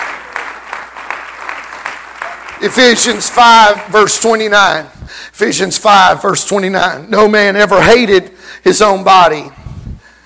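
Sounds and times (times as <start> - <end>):
audience clapping hands in praise: 0.0 - 4.6
speech: 2.6 - 9.6.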